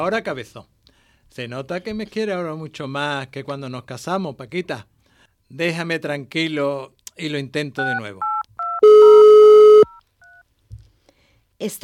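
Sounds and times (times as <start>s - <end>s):
speech: 0.0s - 4.9s, 5.5s - 8.3s, 11.6s - 11.8s
telephone dialing tone: 7.9s - 10.4s
short telephone beeps: 8.2s - 10.4s.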